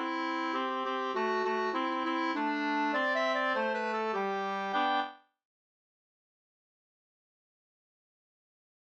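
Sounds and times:
polka music: 0.0 - 5.2.

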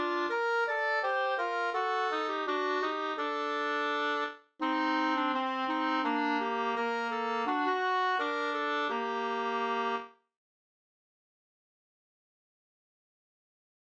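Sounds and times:
folk song melody: 0.0 - 10.0.

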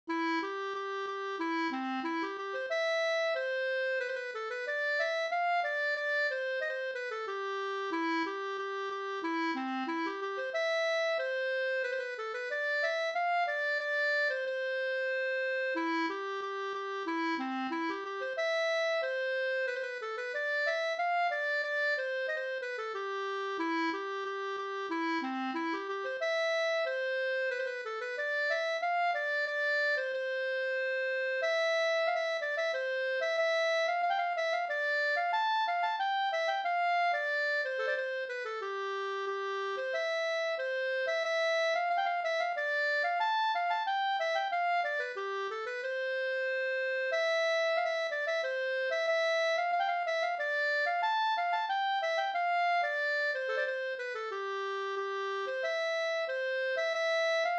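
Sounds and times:
Swedish polska folk dance tune: 0.1 - 57.5.

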